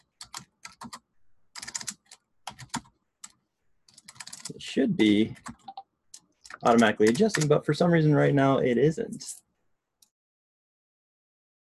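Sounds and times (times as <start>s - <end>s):
typing on a computer keyboard in a text document: 0.0s - 4.6s, 5.3s - 7.6s
speech: 4.5s - 5.5s, 6.6s - 9.4s.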